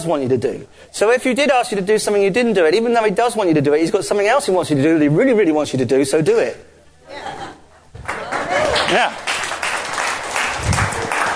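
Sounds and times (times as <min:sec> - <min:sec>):
speech: 0:00.0 - 0:07.4, 0:08.9 - 0:09.2
audience clapping during a talk: 0:08.0 - 0:11.3.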